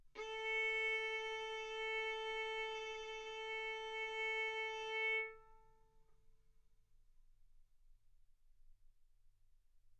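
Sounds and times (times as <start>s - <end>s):
violin bowed mezzo-forte on the A string, A4 and B4: 0.2s - 5.6s.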